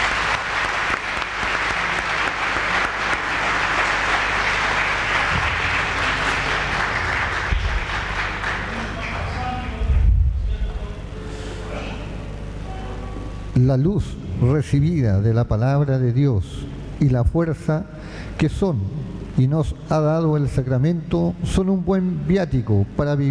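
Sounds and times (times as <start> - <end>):
audience applause: 0.0 - 9.8
low thumps: 9.8 - 10.9
speech: 13.7 - 23.3.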